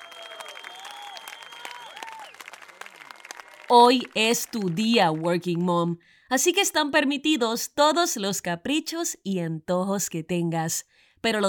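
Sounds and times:
whistles and cheers: 0.0s - 3.7s
crowd standing ovation applause: 0.0s - 5.2s
speech: 3.7s - 11.4s.

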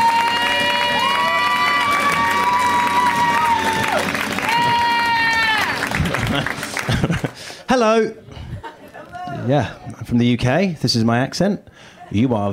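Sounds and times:
comedy club audience applauding: 0.0s - 8.0s
laughter: 5.6s - 9.5s
speech: 7.7s - 8.3s, 9.4s - 12.5s.

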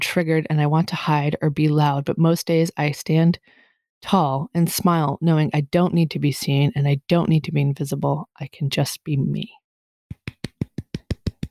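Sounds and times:
speech: 0.2s - 9.6s
soft hand claps: 10.1s - 11.4s.

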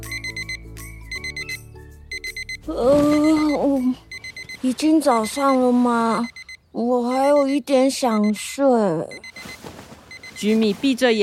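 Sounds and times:
alarm clock ringing: 0.0s - 10.6s
speech: 2.6s - 4.0s, 4.6s - 9.3s, 10.4s - 11.2s.

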